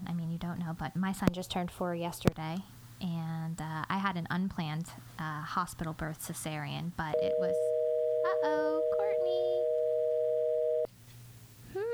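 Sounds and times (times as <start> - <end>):
speech: 0.5 - 7.7, 8.4 - 9.4
telephone dial tone after a dropped phone call: 7.2 - 10.9.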